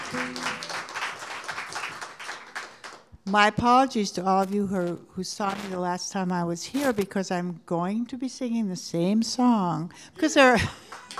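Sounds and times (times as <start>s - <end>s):
audience clapping to welcome a singer-songwriter: 0.0s - 3.1s, 10.9s - 11.1s
speech: 3.3s - 10.8s.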